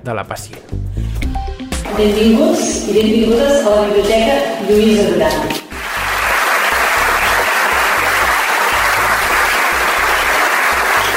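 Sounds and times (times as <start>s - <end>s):
speech: 0.0s - 1.2s, 1.9s - 5.6s
audience applause: 5.7s - 11.1s.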